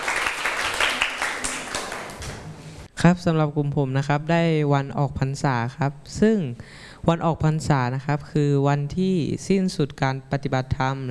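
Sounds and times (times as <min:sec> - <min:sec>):
students in a classroom applauding classmates: 0:00.0 - 0:02.5
speech: 0:03.0 - 0:11.0.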